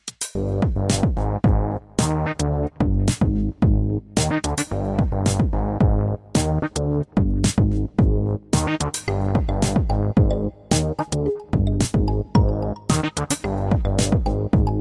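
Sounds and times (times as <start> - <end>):
bass: 0.2 - 14.7.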